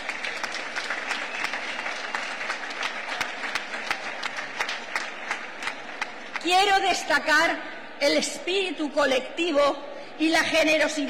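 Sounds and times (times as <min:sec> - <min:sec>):
applause: 0:00.0 - 0:07.1
speech: 0:06.4 - 0:11.0.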